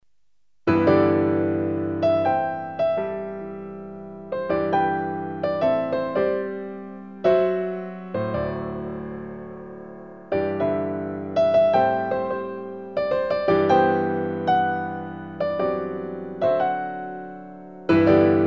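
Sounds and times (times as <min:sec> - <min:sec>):
lyrical piano music: 0:00.7 - 0:18.4.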